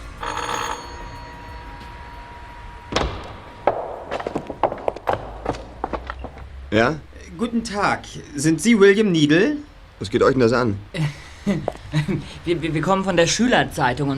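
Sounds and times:
doorbell ringing: 0.0 - 5.0
faint steady hum: 0.0 - 14.1
footsteps: 1.0 - 7.0, 11.6 - 12.0
speech: 6.8 - 14.1
laughter: 10.9 - 12.8.

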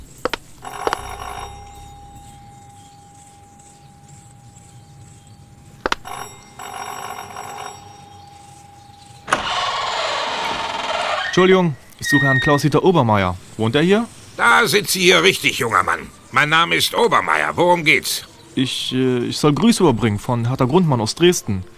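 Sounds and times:
doorbell ringing at villa door: 0.6 - 13.0
speech: 11.4 - 21.7.

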